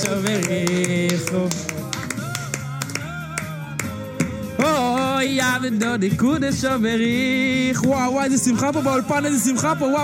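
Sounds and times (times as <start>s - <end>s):
speech: 0.0s - 1.8s, 5.2s - 10.0s
rhythmic hand claps in studio: 0.0s - 6.2s
music: 0.0s - 10.0s
person singing: 0.0s - 10.0s.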